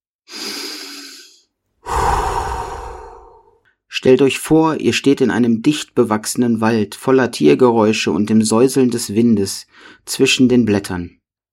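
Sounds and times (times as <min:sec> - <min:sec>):
slow deep breath in and out: 0:00.3 - 0:03.8, 0:09.7 - 0:10.0
speech: 0:04.0 - 0:11.2.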